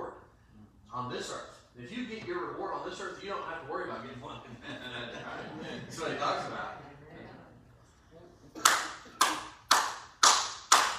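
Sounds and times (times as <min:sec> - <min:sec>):
speech: 0:01.0 - 0:06.8
laughter: 0:04.4 - 0:06.9
audience clapping: 0:08.6 - 0:10.9.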